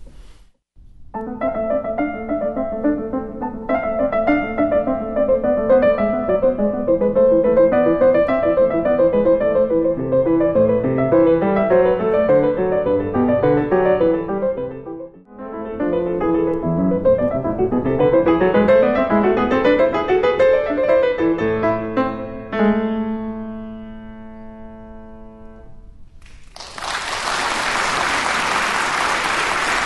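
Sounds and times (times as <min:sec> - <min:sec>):
solo piano playing baroque bourrées and gigue: 0:01.1 - 0:26.0
audience applause after piano performance: 0:26.2 - 0:29.8.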